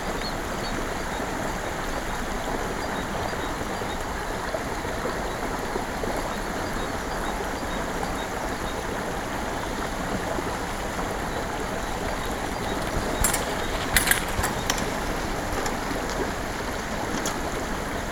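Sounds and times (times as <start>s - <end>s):
pond: 0.0s - 18.1s
river: 0.0s - 18.1s.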